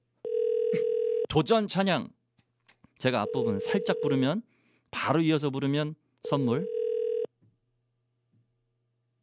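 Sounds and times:
telephone ringing tone on an unanswered call: 0:00.2 - 0:01.3, 0:03.2 - 0:04.2, 0:06.6 - 0:07.3
speech: 0:00.7 - 0:02.2, 0:03.0 - 0:06.8.

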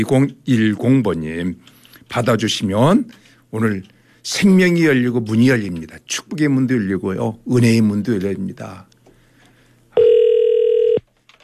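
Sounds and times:
speech: 0:00.0 - 0:08.9
telephone ringing tone of an outgoing call: 0:10.0 - 0:11.1.

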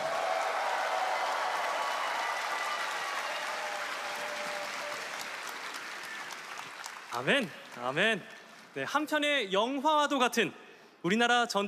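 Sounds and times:
audience applause: 0:00.0 - 0:08.1
speech: 0:07.2 - 0:11.6.

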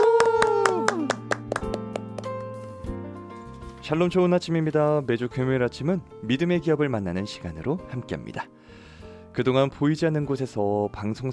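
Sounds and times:
hand clapping: 0:00.0 - 0:02.5
speech: 0:03.9 - 0:08.8, 0:09.4 - 0:11.3.

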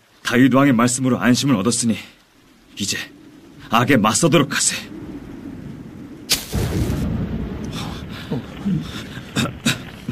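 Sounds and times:
speech: 0:00.3 - 0:02.2, 0:02.8 - 0:05.1
low rolling thunder rumble: 0:00.9 - 0:10.1
thunder cracks from a lightning strike: 0:02.6 - 0:10.1.

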